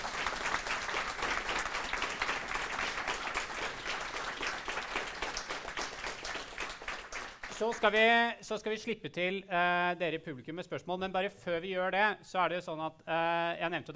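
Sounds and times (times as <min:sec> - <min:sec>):
audience applause: 0:00.0 - 0:08.0
speech: 0:07.6 - 0:13.9.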